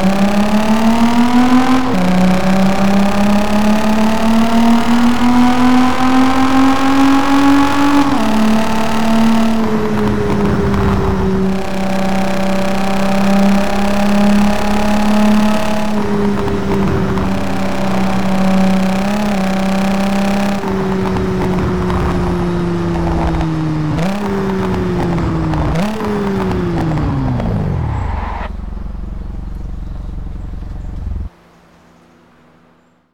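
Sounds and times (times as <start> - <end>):
Audi S4 B5 backfire: 0.0 - 31.3.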